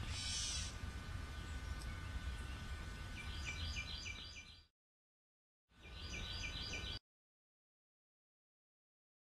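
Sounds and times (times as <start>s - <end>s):
birds calling: 0.0s - 4.7s, 5.8s - 7.0s.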